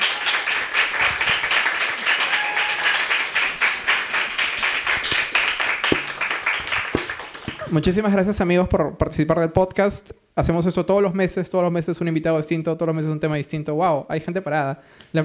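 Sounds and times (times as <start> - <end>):
audience applause: 0.0 - 7.8
speech: 7.7 - 15.2.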